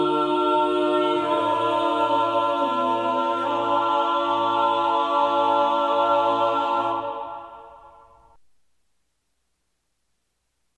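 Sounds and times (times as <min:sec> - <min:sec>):
choir singing a motet: 0:00.0 - 0:08.0.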